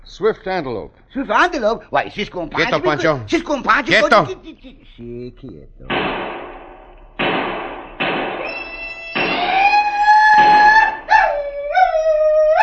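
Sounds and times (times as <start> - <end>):
speech: 0.1 - 6.4
war whoop yells: 9.4 - 12.6.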